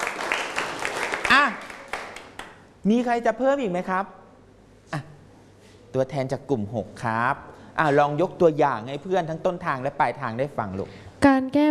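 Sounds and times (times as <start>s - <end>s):
class of students clapping for a classmate: 0.0s - 2.7s
speech: 2.8s - 4.2s, 5.9s - 11.6s.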